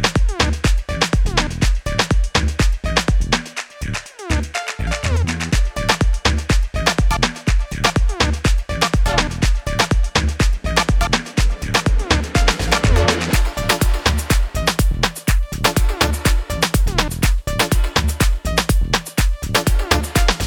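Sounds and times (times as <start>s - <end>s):
afrotrap music: 0.0s - 20.4s.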